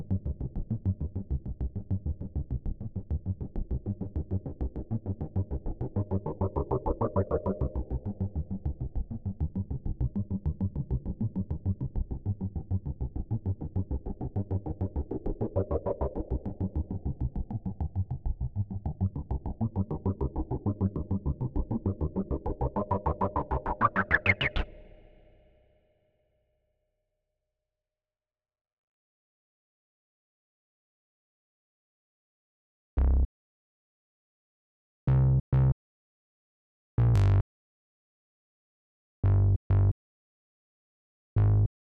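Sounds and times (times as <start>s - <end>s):
bass: 0.0s - 25.3s, 33.0s - 33.3s, 35.1s - 35.8s, 37.0s - 37.5s, 39.2s - 40.0s, 41.3s - 41.7s.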